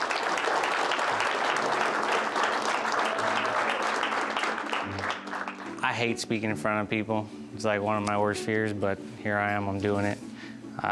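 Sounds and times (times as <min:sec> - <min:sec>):
audience applause: 0:00.0 - 0:05.9
speech: 0:05.9 - 0:10.9.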